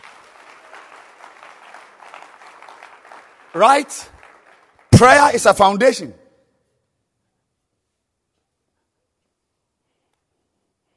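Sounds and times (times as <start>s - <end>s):
group clapping: 0.0s - 5.8s
speech: 3.6s - 4.1s, 5.0s - 6.2s.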